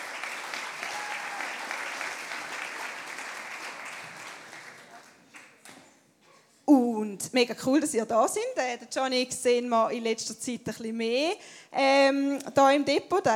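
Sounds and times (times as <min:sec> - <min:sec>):
applause: 0:00.0 - 0:05.8
speech: 0:07.2 - 0:13.3.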